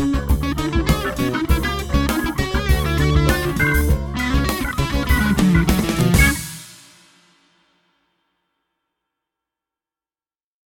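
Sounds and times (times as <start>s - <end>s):
funk music: 0.0s - 7.0s.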